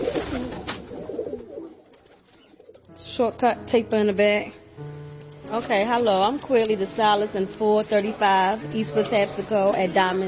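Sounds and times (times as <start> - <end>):
pigeons cooing: 0.0 - 2.9
speech: 3.2 - 4.6, 5.5 - 10.2.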